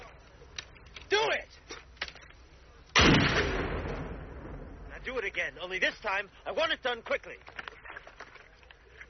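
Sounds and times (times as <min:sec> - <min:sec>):
gunshot from a fired weapon: 0:03.0 - 0:04.9
speech: 0:05.4 - 0:07.5.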